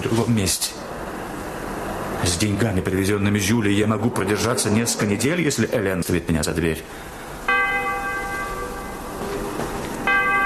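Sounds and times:
speech: 0.0s - 1.0s, 2.2s - 7.2s
church bells ringing: 7.4s - 10.4s.

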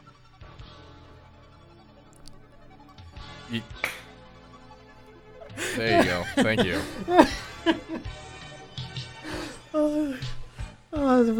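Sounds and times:
speech: 3.5s - 4.0s, 5.8s - 8.3s, 10.9s - 11.3s
hand clap: 3.8s - 4.2s
laughter: 5.4s - 8.2s.

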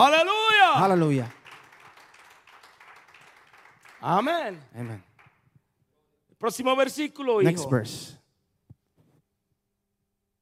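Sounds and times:
speech: 0.0s - 1.4s, 4.0s - 5.1s, 6.4s - 8.2s
audience applause: 0.2s - 5.4s.

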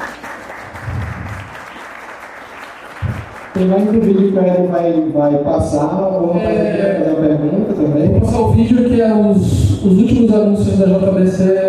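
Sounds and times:
audience applause: 0.0s - 4.4s
speech: 3.6s - 11.6s.

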